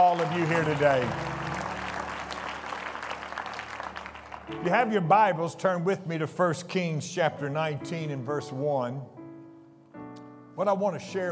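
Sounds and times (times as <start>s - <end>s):
speech: 0.0s - 1.3s, 4.5s - 9.2s, 10.6s - 11.3s
congregation at First Pentecostal Church applauding: 0.0s - 5.3s.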